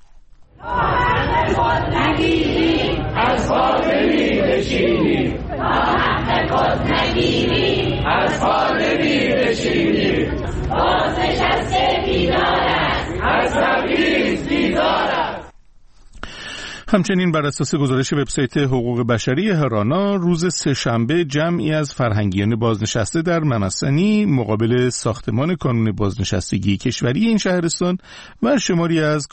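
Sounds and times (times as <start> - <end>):
protesting pensioners in Kermanshah chanting slogans in unison: 0.6 - 15.5
speech: 1.5 - 2.8, 16.9 - 29.3.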